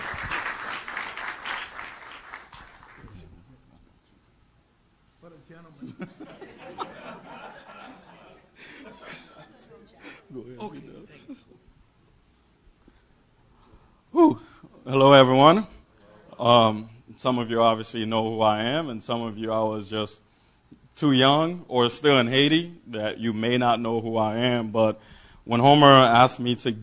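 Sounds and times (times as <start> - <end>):
audience applause: 0.0 - 3.3
speech: 5.6 - 7.4, 14.9 - 15.7, 16.4 - 20.2, 21.0 - 26.8
laughter: 5.7 - 11.7.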